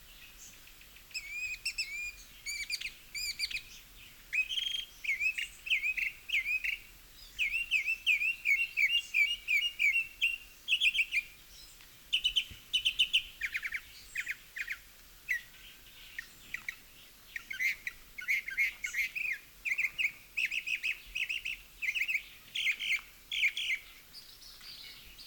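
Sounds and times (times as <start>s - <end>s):
Northern Mockingbird singing varied medley of chirps and trills: 0.1s - 25.2s.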